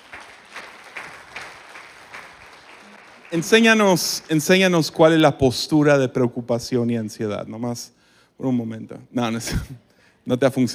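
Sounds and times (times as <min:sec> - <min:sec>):
audience applause: 0:00.0 - 0:04.5
speech: 0:03.3 - 0:10.7.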